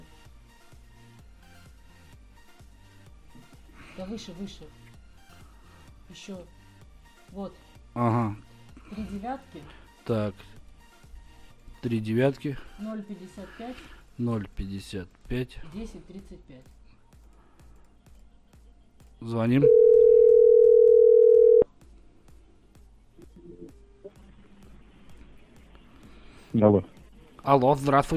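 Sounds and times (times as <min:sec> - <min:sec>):
speech: 0:04.0 - 0:04.8, 0:06.1 - 0:06.6, 0:07.3 - 0:10.6, 0:11.8 - 0:16.8, 0:19.2 - 0:19.8, 0:26.6 - 0:28.1
telephone dial tone while placing a call: 0:19.6 - 0:21.6.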